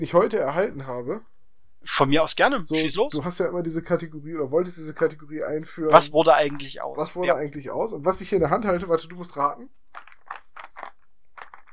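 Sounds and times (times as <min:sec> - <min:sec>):
speech: 0:00.0 - 0:10.1
dice rolling over a surface: 0:09.8 - 0:11.7.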